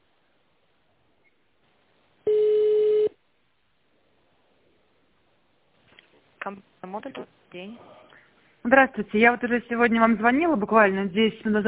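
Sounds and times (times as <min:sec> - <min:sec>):
telephone tone while a call is transferred to a manager: 0:02.3 - 0:03.1
speech: 0:06.4 - 0:08.0, 0:08.6 - 0:11.6.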